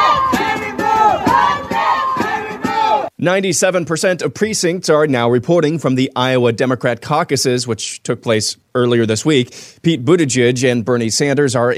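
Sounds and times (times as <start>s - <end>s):
protesters screaming: 0.0s - 3.1s
speech: 3.2s - 11.7s.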